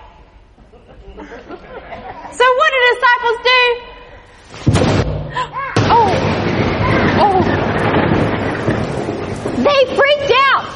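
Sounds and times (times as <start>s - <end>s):
laughter: 0.6s - 2.4s
speech: 0.9s - 3.8s
thunder from a storm: 4.7s - 10.7s.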